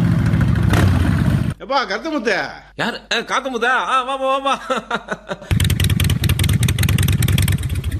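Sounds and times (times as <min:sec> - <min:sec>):
motorcycle engine revving: 0:00.0 - 0:01.6, 0:05.5 - 0:07.9
speech: 0:01.7 - 0:05.6.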